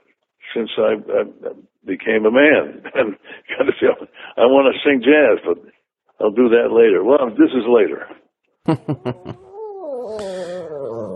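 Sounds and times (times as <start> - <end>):
speech: 0.5 - 9.4
laughter: 8.7 - 9.7
puppy whimpering: 9.1 - 11.1.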